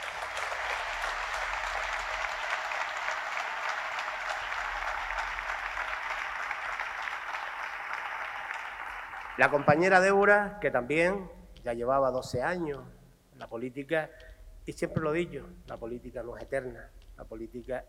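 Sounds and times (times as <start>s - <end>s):
audience applause: 0.0s - 10.2s
speech: 9.4s - 17.8s.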